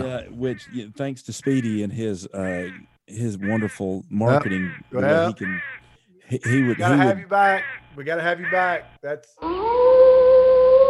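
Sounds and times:
speech: 0:00.1 - 0:10.0
wolf howl: 0:09.4 - 0:10.8.

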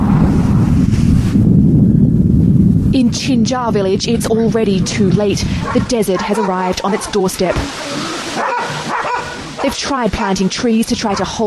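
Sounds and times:
desert sandstorm wind roaring: 0:00.0 - 0:09.7
speech: 0:03.1 - 0:08.7, 0:09.6 - 0:11.4.

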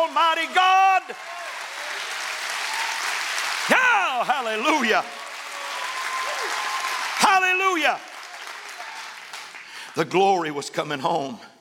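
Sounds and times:
audience standing and clapping hands: 0:00.0 - 0:10.0
speech: 0:04.2 - 0:05.2, 0:07.4 - 0:08.1, 0:10.0 - 0:11.5.

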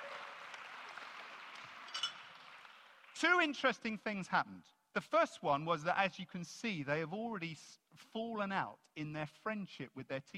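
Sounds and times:
audience applause: 0:00.0 - 0:03.4
speech: 0:03.2 - 0:10.3.

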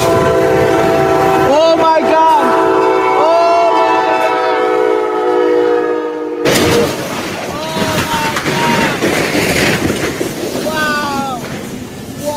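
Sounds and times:
train horn blaring: 0:00.0 - 0:07.1
train smashing through cars: 0:06.5 - 0:12.2.

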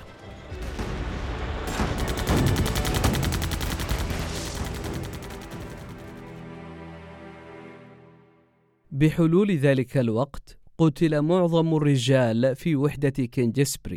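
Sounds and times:
heavy gunfire with machine-gun bursts: 0:01.6 - 0:06.4
speech: 0:09.0 - 0:13.9.

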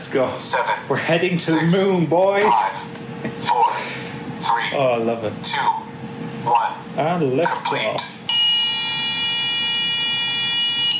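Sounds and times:
speech: 0:00.1 - 0:08.2
fryer high-temperature alarm tone: 0:08.3 - 0:10.9.

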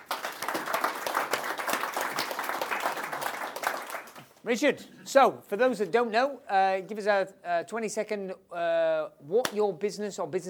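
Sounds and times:
audience applause welcoming a guest at a live business show: 0:00.0 - 0:04.3
speech: 0:04.4 - 0:10.4.

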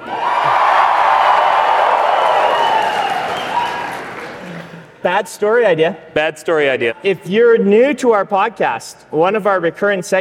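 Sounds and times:
audience cheering and clapping with whoops: 0:00.0 - 0:04.8
speech: 0:05.0 - 0:10.1.

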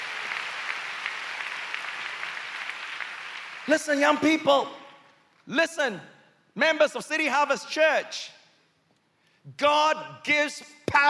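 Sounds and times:
audience clapping: 0:00.0 - 0:04.3
speech: 0:03.7 - 0:04.8, 0:05.5 - 0:08.4, 0:09.4 - 0:11.0.

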